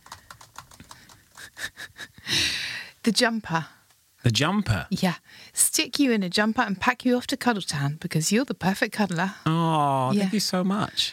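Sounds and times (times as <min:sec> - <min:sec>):
numbers typed into a calculator: 0:00.0 - 0:01.5
speech: 0:03.1 - 0:11.1.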